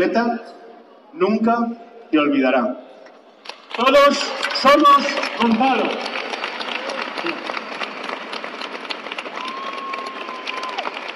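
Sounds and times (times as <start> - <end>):
speech: 0.0 - 2.9, 3.8 - 6.2
audience applause: 3.5 - 11.1.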